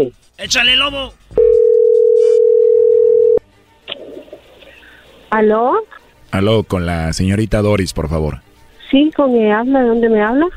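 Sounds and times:
speech: 0:00.0 - 0:01.3, 0:05.3 - 0:10.5
telephone dial tone while placing call: 0:01.4 - 0:03.4.

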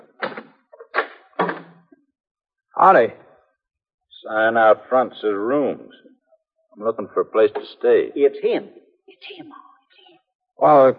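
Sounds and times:
door being opened with rattling clunks: 0:00.0 - 0:01.8
speech: 0:02.8 - 0:03.2, 0:04.2 - 0:06.1, 0:06.8 - 0:09.7, 0:10.6 - 0:10.9.

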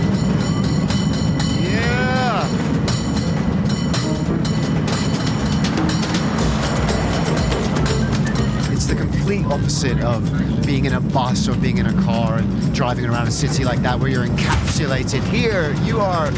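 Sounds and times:
cable car bell ringing: 0:00.0 - 0:08.8
cable car rumbling and rattling: 0:00.0 - 0:16.3
speech: 0:09.5 - 0:16.3.

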